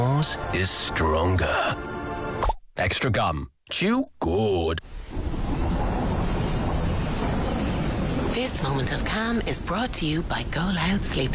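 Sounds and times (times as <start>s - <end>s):
speech: 0.2s - 5.4s, 8.4s - 11.3s
wind in a winter mountain setting: 4.8s - 11.3s.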